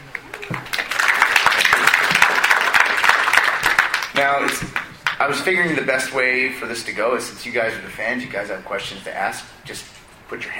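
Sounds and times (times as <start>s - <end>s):
audience applause: 0.1s - 5.2s
speech: 4.2s - 10.5s.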